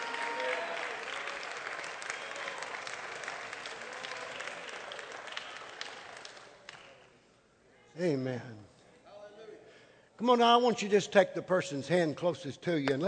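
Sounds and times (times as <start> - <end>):
church congregation clapping in praise: 0.0 - 7.2
speech: 8.0 - 8.7, 10.2 - 13.0.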